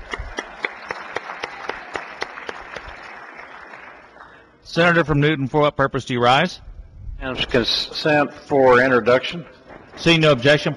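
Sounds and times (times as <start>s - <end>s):
applause in legislative chamber: 0.0s - 4.6s
speech: 4.7s - 10.7s.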